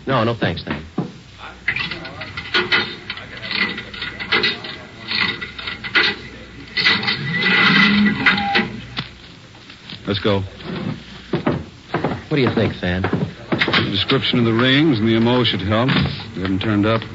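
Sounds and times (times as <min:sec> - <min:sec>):
speech: 0:00.0 - 0:00.8, 0:10.1 - 0:11.0, 0:12.3 - 0:13.3, 0:13.9 - 0:17.1
cigarette vending machine clicks, ratcheting clunks and knocks: 0:01.7 - 0:09.0.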